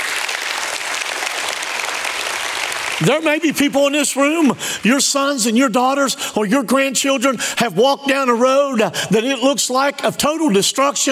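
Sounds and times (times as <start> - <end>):
audience applause: 0.0 - 3.6
speech: 3.0 - 11.1.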